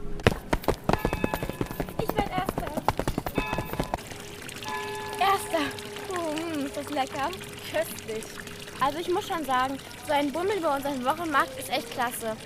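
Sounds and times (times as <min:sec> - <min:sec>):
rapid clattering footsteps: 0:00.0 - 0:04.0
fountain water splashing: 0:00.2 - 0:12.4
children's voices and chatter: 0:05.2 - 0:12.4
speech: 0:06.9 - 0:12.4.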